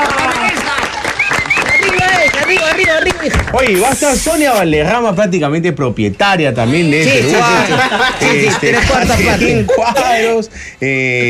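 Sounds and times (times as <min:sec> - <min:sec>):
audience applause: 0:00.0 - 0:03.4
speech: 0:03.6 - 0:11.2
laughter: 0:06.7 - 0:10.4.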